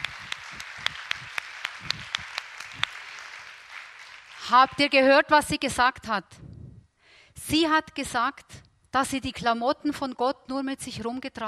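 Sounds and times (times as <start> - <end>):
audience applause: 0.0 - 4.9
speech: 4.5 - 6.4, 7.4 - 11.4.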